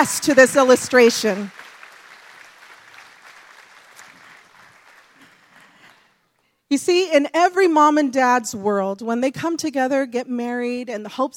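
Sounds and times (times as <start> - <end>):
speech: 0.0 - 1.6, 6.7 - 11.3
audience applause: 0.0 - 6.1.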